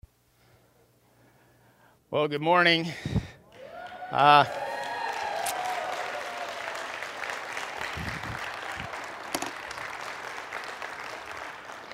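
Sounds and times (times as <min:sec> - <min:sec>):
speech: 0:02.1 - 0:03.2, 0:04.1 - 0:04.6
people clapping: 0:03.5 - 0:11.9.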